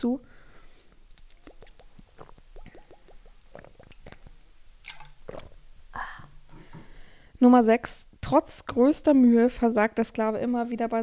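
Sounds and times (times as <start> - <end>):
speech: 0.0 - 0.3, 7.4 - 11.0
breathy exhale: 0.2 - 0.9, 6.0 - 7.3
person sipping a drink: 0.8 - 6.3.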